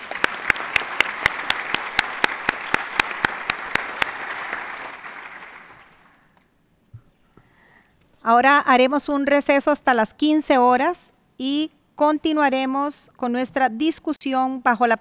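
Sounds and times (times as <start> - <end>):
audience applause for a panel: 0.0 - 6.2
sharp clap: 0.0 - 6.2
speech: 8.3 - 14.9.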